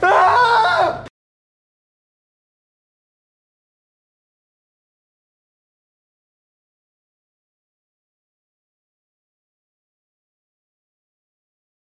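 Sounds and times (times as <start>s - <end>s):
person yelling: 0.0s - 1.1s.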